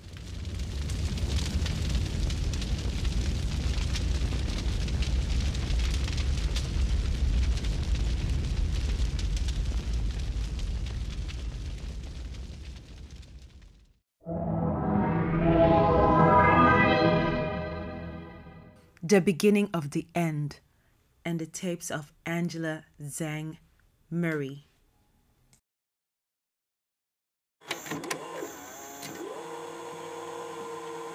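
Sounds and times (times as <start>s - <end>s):
fire roaring through a beauty salon: 0.0s - 16.6s
brief tonal sound: 14.2s - 18.8s
speech: 19.1s - 24.7s.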